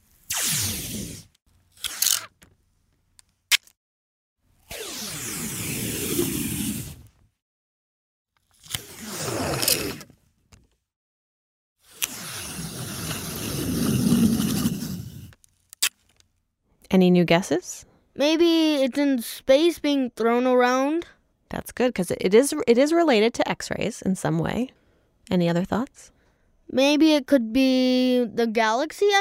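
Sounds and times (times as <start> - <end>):
Scotch tape being peeled off: 0.1 - 2.5, 3.2 - 3.8, 8.4 - 10.1, 11.8 - 16.3
speech: 17.0 - 29.1.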